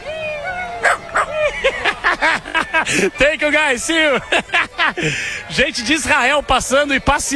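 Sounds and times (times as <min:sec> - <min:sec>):
small dachshund yipping on Times Square: 0:00.0 - 0:02.2
laughter: 0:00.0 - 0:07.3
speech: 0:02.2 - 0:07.3.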